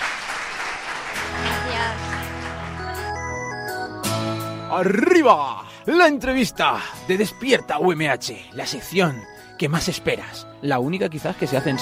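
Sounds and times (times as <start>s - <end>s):
audience applause: 0.0s - 3.5s
speech: 4.7s - 11.8s.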